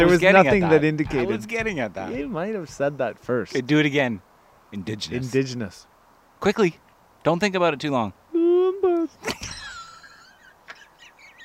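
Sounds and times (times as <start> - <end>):
speech: 0.0 - 8.2
bird call: 10.3 - 11.4.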